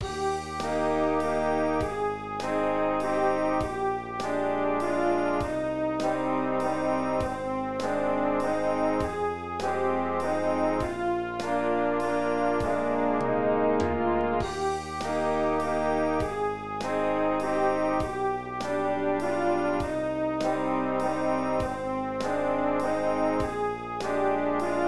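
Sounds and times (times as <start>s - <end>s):
English waltz music: 0.0s - 24.8s.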